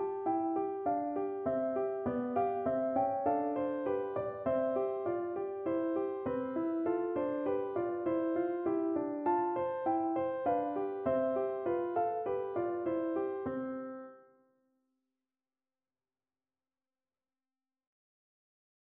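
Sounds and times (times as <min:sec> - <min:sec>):
piano melody: 0:00.0 - 0:14.3.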